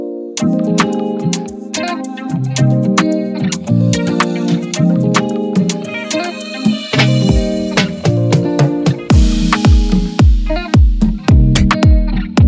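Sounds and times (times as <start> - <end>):
Afro house instrumental beat: 0.4 - 12.4.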